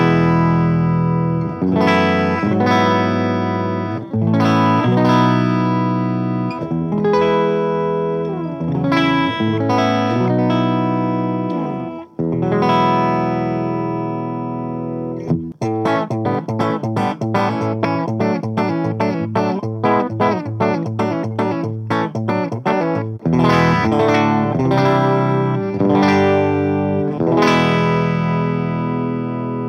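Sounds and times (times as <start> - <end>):
clean electric guitar on the bridge pickup playing ringing chords: 0.0 - 29.6.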